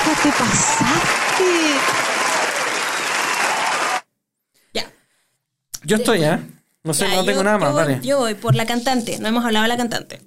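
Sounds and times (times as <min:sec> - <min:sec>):
applause: 0:00.0 - 0:04.1
speech: 0:00.1 - 0:02.2, 0:05.9 - 0:10.2.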